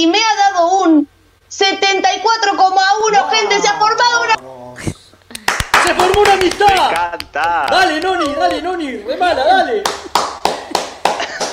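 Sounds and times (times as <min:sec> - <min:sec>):
speech: 0:00.0 - 0:05.0, 0:05.9 - 0:10.1
laughter: 0:03.0 - 0:04.4, 0:05.3 - 0:11.5
clapping applause: 0:05.3 - 0:08.8, 0:09.8 - 0:11.5.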